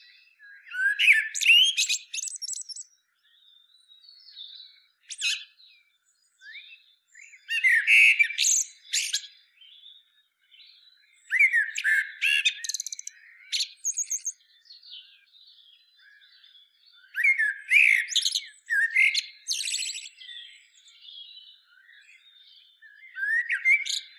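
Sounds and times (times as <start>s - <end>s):
common blackbird singing: 0.0s - 24.1s.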